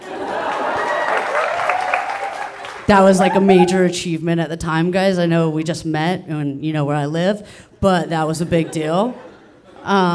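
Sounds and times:
audience applause: 0.4 - 3.8
speech: 2.9 - 10.1
laughter: 3.2 - 4.0.

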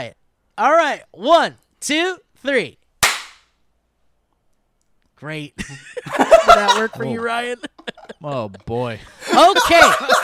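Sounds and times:
speech: 0.0 - 2.8, 5.2 - 10.2
hand slap for a sync point: 3.0 - 3.5
laughter: 5.6 - 10.2.

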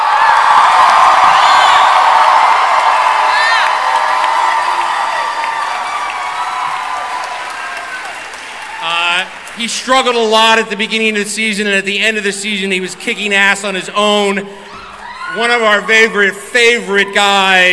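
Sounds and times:
crowd cheering: 0.0 - 11.0, 14.5 - 17.7
speech: 9.6 - 14.7, 15.3 - 17.7.

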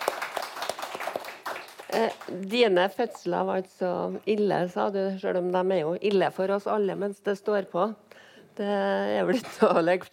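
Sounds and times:
sparse hand clapping from an audience at a Norwegian book talk: 0.0 - 2.3
speech: 1.9 - 10.1.

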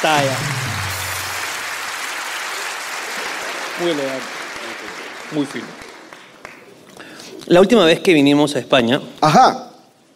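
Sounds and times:
speech: 0.0 - 0.6, 3.8 - 4.4, 5.3 - 5.9, 7.4 - 9.6
audience applause: 0.0 - 6.6.

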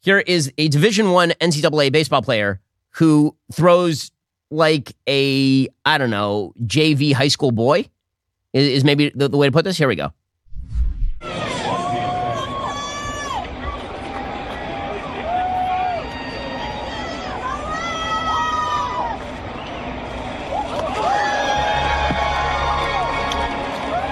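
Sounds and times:
speech: 0.0 - 10.2
crowd cheering at a baseball game: 11.2 - 24.0
scattered shouts and whoops: 11.3 - 19.2, 20.5 - 24.0.

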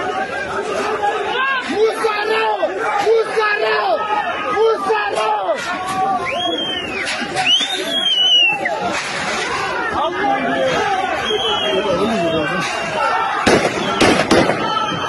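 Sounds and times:
crowd shouting and chatter: 0.0 - 15.0
warning gunshots fired by a mob at police at an airport gate in Russia: 13.4 - 15.0.

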